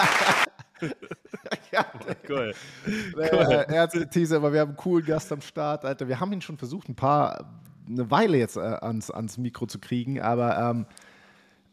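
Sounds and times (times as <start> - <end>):
applause from a small group: 0.0 - 1.1
laughter: 0.0 - 4.0
speech: 0.0 - 11.1.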